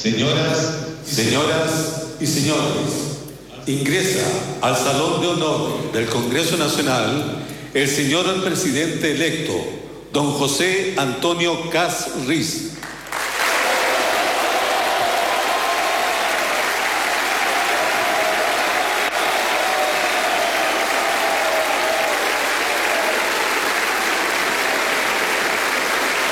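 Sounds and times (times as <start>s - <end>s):
speech: 0.0s - 12.8s
thunderous applause in a hall: 13.1s - 26.3s.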